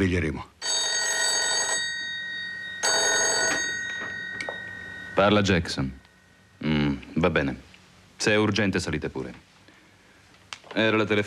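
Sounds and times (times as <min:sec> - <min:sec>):
speech: 0:00.0 - 0:00.6, 0:05.2 - 0:06.0, 0:06.6 - 0:09.4, 0:10.8 - 0:11.2
telephone bell ringing: 0:00.6 - 0:06.4.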